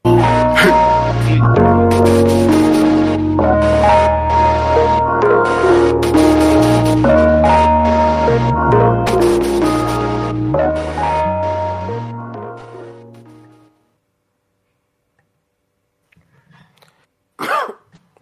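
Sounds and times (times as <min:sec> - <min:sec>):
song with deep bass: 0:00.0 - 0:13.7
person coughing: 0:17.4 - 0:18.0
person clearing throat: 0:17.4 - 0:18.1.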